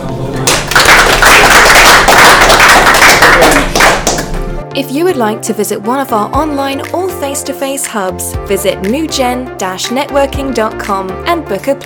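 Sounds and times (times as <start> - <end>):
round of applause: 0.5 - 4.2
speech: 4.8 - 11.8.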